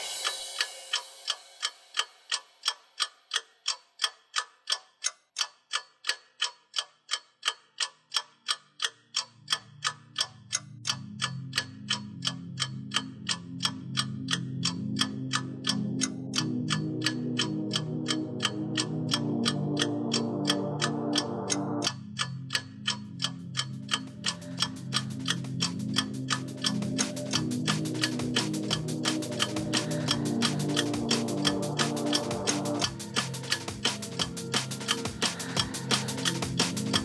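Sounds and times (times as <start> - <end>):
clockwork mechanism of a huge telescope ticking: 0.0 - 37.0
low sustained droning tones: 13.5 - 37.0.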